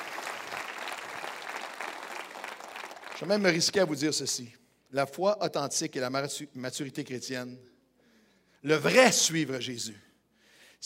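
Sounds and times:
audience applauding: 0.0s - 3.8s
speech: 3.2s - 7.7s, 8.6s - 10.1s.

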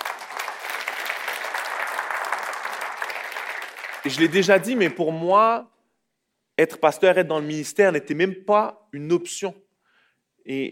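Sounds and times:
steady crowd applause: 0.0s - 5.0s
speech: 4.0s - 5.7s, 6.6s - 9.6s, 10.4s - 10.7s.

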